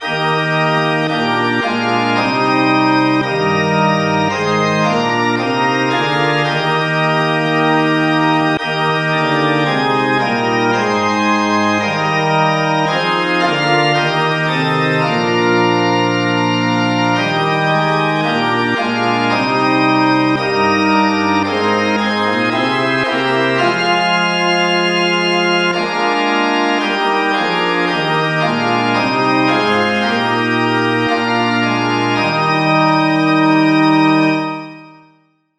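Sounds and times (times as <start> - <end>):
organ playing a cover: 0.0 - 35.2.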